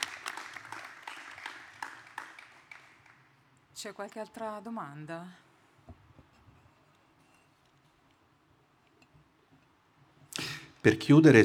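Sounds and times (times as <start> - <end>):
audience applause: 0.0 - 3.3
speech: 3.8 - 5.5, 10.8 - 11.4.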